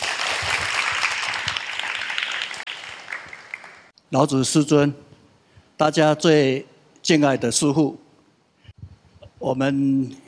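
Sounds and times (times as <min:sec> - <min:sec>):
audience applause: 0:00.0 - 0:03.9
speech: 0:04.1 - 0:05.1, 0:05.8 - 0:08.0, 0:09.4 - 0:10.2.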